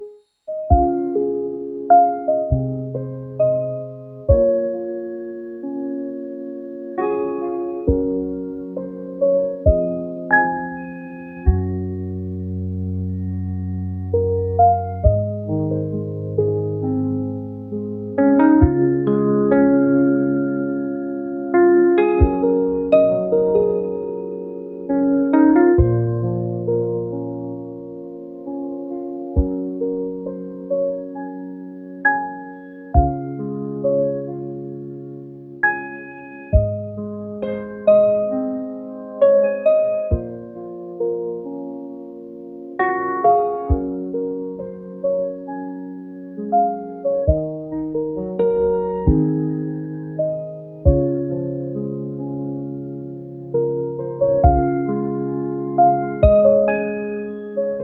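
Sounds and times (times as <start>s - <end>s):
calm piano: 0.0s - 57.8s.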